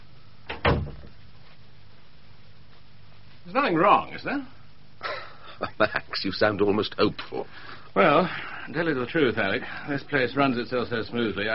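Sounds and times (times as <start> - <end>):
door being shut: 0.5 - 1.1
speech: 3.4 - 4.6, 5.6 - 11.5.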